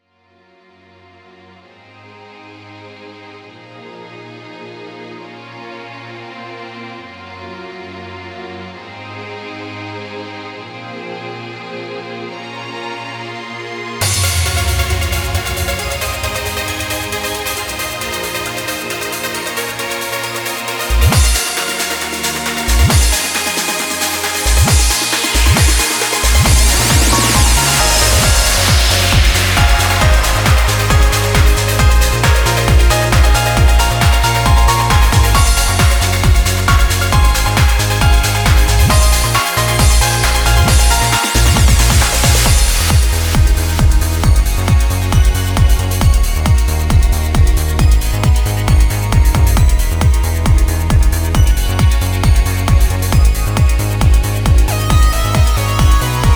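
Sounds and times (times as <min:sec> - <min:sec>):
instrumental music without vocal: 0:12.2 - 0:56.3.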